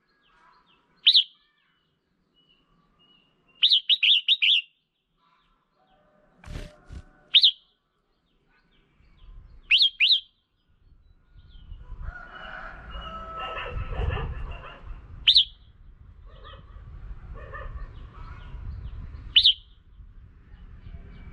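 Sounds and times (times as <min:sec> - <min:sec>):
red-whiskered bulbul trills of slurred whistles: 0:01.0 - 0:01.4, 0:03.5 - 0:04.7, 0:07.3 - 0:07.7, 0:09.2 - 0:10.4, 0:15.3 - 0:15.7, 0:19.3 - 0:19.8
rustling noise: 0:06.4 - 0:07.3.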